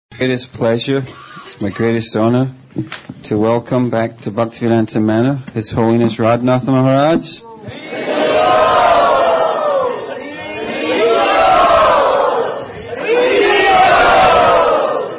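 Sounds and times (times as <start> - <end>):
speech: 0.2 - 9.1
crowd of devotees chanting at Bhaktivedanta Manor: 7.6 - 15.1.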